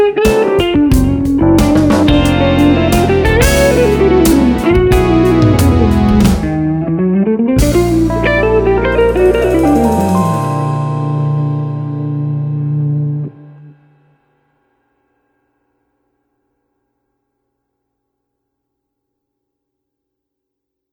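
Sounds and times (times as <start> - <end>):
short piece of music: 0.0 - 14.0.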